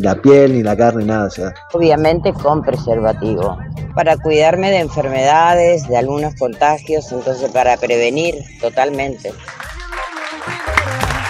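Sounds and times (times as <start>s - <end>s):
speech: 0.0s - 9.6s
audience applause: 9.3s - 11.2s.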